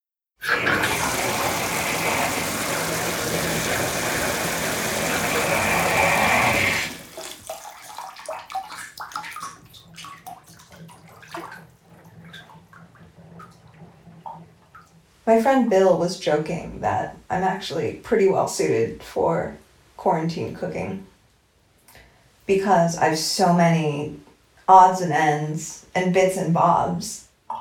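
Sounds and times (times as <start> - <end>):
bathwater rushing into a tub: 0.4 - 14.9
water sloshing in a filled tub as someone moves: 0.4 - 18.0
speech: 15.3 - 21.1, 22.5 - 27.2.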